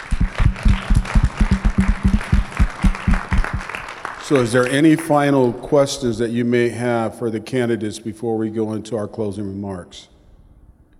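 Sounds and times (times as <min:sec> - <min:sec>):
audience applause: 0:00.0 - 0:04.9
speech: 0:04.3 - 0:10.1.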